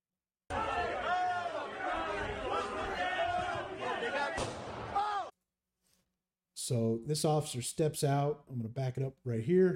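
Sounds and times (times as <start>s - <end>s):
several voices shouting and chattering: 0.5s - 5.3s
gunshot fired by a police officer: 4.4s - 5.1s
speech: 6.7s - 9.7s.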